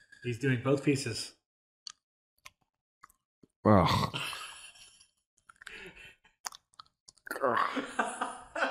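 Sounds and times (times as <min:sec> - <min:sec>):
speech: 0:00.2 - 0:01.4, 0:03.6 - 0:04.2
gum chewing close to the microphone: 0:01.9 - 0:03.2, 0:06.4 - 0:07.6.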